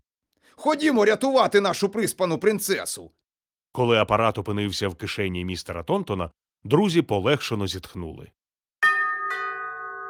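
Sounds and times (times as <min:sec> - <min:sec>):
speech: 0:00.6 - 0:08.4
doorbell two-tone chime: 0:08.8 - 0:10.0.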